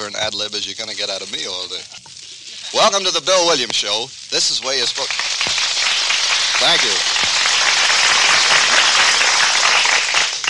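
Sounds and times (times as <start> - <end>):
speech: 0.1 - 2.1, 2.7 - 5.6, 6.6 - 7.2
studio audience applause: 4.6 - 10.4.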